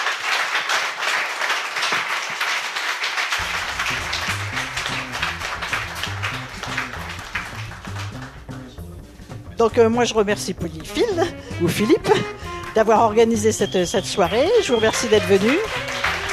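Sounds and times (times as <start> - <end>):
audience applause: 0.0 - 8.6, 13.7 - 16.3
speech: 9.6 - 15.8.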